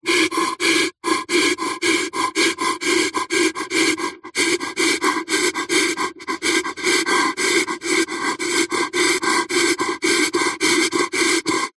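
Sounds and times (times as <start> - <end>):
firefighter breathing fast panic breaths in a mask: 0.0 - 11.7.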